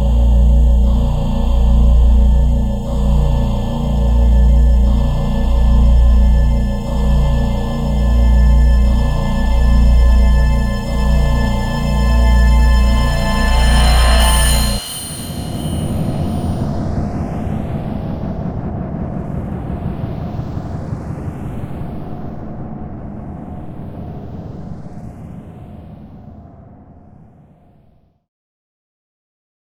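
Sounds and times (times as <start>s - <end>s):
cinematic tension sound effects: 0.2s - 16.8s.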